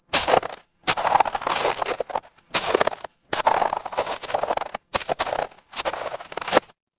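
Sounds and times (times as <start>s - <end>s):
footsteps in snow: 0.0s - 6.8s.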